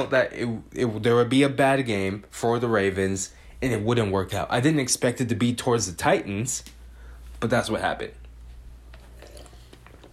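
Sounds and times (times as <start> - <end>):
speech: 0.0 - 6.8, 7.4 - 8.2
person drinking water and swallowing: 8.9 - 10.1.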